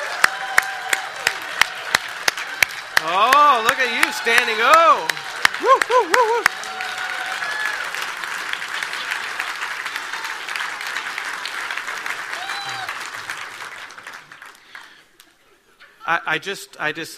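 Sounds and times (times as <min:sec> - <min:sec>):
audience clapping: 0:00.0 - 0:15.4
speech: 0:03.0 - 0:06.6, 0:16.1 - 0:17.1.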